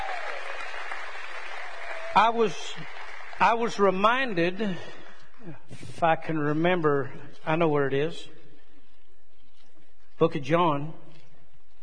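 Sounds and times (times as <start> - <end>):
audience clapping: 0.0 - 4.3
speech: 2.2 - 8.4, 10.2 - 11.0.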